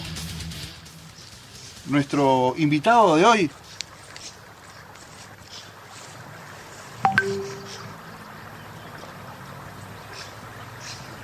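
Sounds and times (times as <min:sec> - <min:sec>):
speech: 0:01.8 - 0:03.6
mobile phone ringing: 0:07.1 - 0:07.9.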